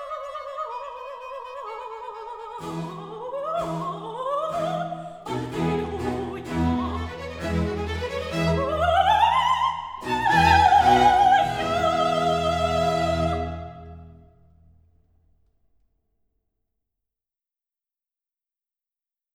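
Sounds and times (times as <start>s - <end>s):
allegro classical piece: 1.5s - 14.3s.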